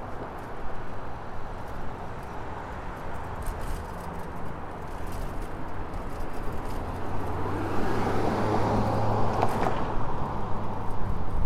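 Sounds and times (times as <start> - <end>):
bike ride wind and tyres rumbling: 0.0 - 11.4
vehicle passing: 7.0 - 10.1.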